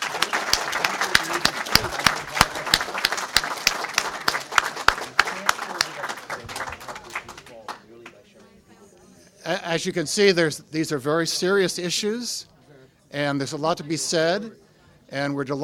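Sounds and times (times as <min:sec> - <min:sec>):
audience applause: 0:00.0 - 0:07.8
speech: 0:09.8 - 0:12.5, 0:13.1 - 0:15.6.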